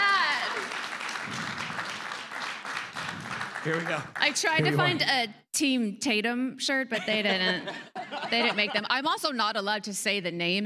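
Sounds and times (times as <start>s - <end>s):
audience applause: 0.0s - 4.8s
speech: 3.6s - 10.6s
laughter: 7.0s - 9.0s.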